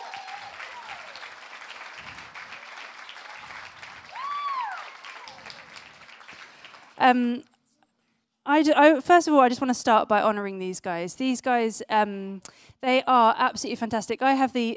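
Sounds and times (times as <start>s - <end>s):
audience applause: 0.0s - 7.0s
speech: 7.0s - 7.5s, 8.5s - 14.7s.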